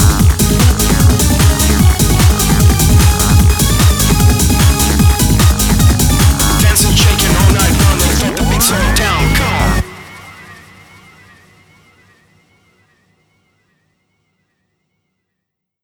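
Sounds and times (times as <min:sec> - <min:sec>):
music beat: 0:00.0 - 0:11.5.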